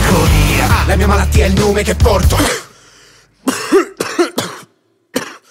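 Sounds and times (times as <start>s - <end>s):
speech: 0.1s - 2.7s
person coughing: 2.3s - 2.9s, 3.4s - 5.4s.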